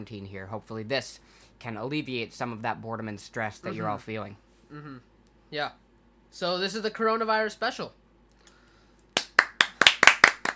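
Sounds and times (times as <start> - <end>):
speech: 0.0 - 8.0
hand claps: 9.1 - 10.5.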